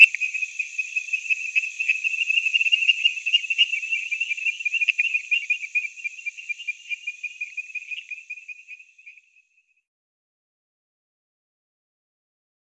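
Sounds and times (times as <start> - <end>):
Temple tree frog calling: 0.0 - 9.7.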